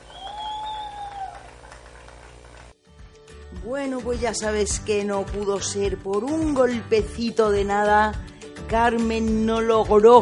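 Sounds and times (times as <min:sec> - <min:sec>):
high whistled tone: 0:00.0 - 0:01.5
golf spectators applauding: 0:00.0 - 0:02.8
speech: 0:03.5 - 0:10.2.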